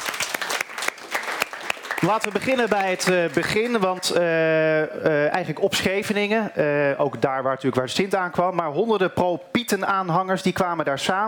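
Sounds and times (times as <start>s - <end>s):
studio audience applause: 0.0s - 4.2s
speech: 2.0s - 11.2s.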